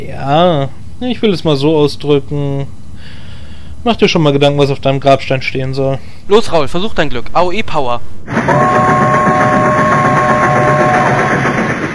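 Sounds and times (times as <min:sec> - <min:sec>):
speech: 0:00.0 - 0:03.2, 0:03.8 - 0:08.8
steady horn-like tone: 0:06.0 - 0:11.5
train roaring through with dense loud rumbling: 0:06.2 - 0:11.9.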